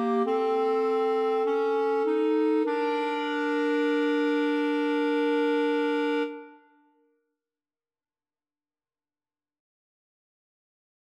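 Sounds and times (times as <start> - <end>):
clarinet trio: 0.0 - 6.7.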